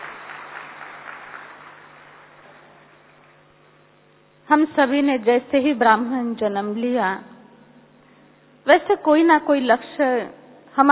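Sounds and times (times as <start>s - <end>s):
audience applause: 0.0s - 3.4s
speech: 4.5s - 7.3s, 8.7s - 10.9s.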